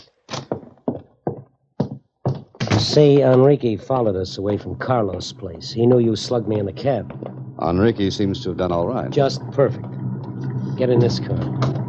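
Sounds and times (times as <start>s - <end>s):
door opening and closing: 2.3s - 4.2s, 6.6s - 7.7s, 9.7s - 11.8s
speech: 2.8s - 10.0s, 10.8s - 11.8s.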